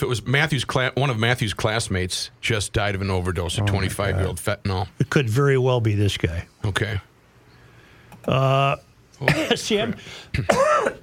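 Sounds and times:
speech: 0.0s - 7.1s, 8.2s - 11.0s
person coughing: 9.3s - 9.6s, 10.2s - 11.0s.

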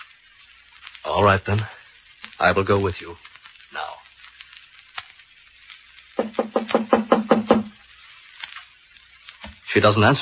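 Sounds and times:
speech: 1.0s - 1.8s, 2.4s - 4.0s, 9.8s - 10.2s
knocking on a door: 6.2s - 7.7s.

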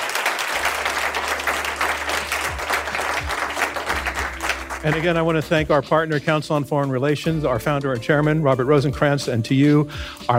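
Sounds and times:
crowd applause: 0.0s - 5.6s
speech: 4.8s - 10.3s.

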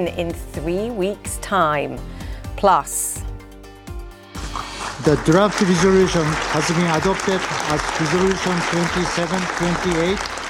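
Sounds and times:
speech: 0.0s - 3.2s, 5.0s - 10.3s
applause at the United Nations after a Gaza ceasefire resolution: 4.4s - 10.4s.

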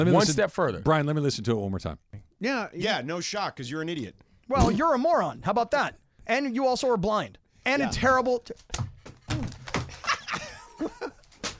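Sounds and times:
speech: 0.0s - 9.4s
plastic water bottle smacking against a belly: 8.7s - 10.5s
people laughing: 9.9s - 11.3s.

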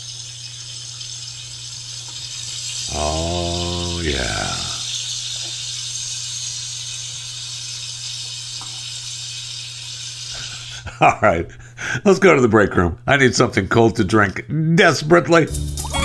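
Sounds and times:
bacon sizzling in a frying pan: 0.0s - 3.5s, 4.5s - 10.6s
speech: 2.9s - 4.6s, 11.0s - 15.9s.

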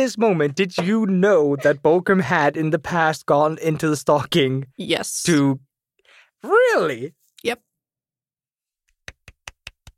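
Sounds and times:
speech: 0.0s - 5.7s, 6.4s - 7.7s
tiny golf clap: 8.9s - 9.9s.

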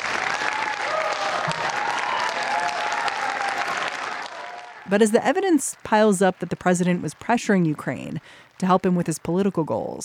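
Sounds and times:
applause in a hearing room: 0.0s - 6.7s
speech: 4.9s - 10.0s.

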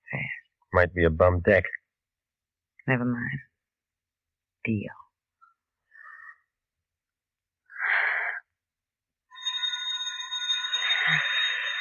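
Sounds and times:
speech: 0.8s - 1.8s, 2.9s - 3.5s, 4.6s - 5.0s
boxing round bell: 9.3s - 11.8s.

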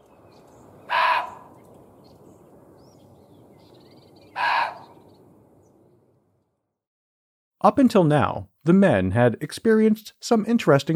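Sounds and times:
muntjac deer barking: 0.9s - 1.5s, 4.4s - 5.0s
speech: 7.6s - 10.9s.

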